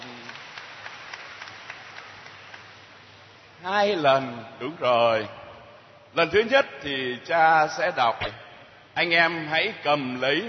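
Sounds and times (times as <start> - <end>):
audience clapping: 0.0 - 3.2
speech: 3.6 - 5.4, 6.1 - 8.4, 9.0 - 10.4.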